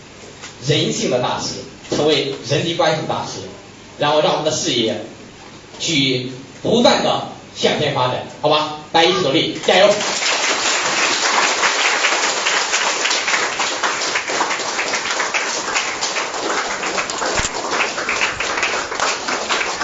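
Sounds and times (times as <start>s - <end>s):
speech: 0.6s - 5.1s, 5.8s - 10.2s
loud sustained applause from a large crowd: 9.8s - 19.8s.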